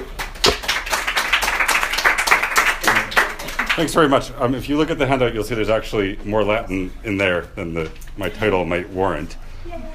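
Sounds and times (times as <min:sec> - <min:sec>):
audience applause: 0:00.2 - 0:03.9
speech: 0:03.8 - 0:09.9.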